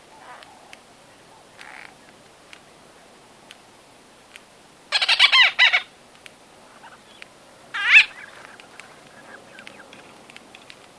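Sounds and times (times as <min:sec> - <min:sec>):
White-fronted bee-eater harsh nasal chattering calls: 0:04.9 - 0:05.9, 0:06.7 - 0:10.2.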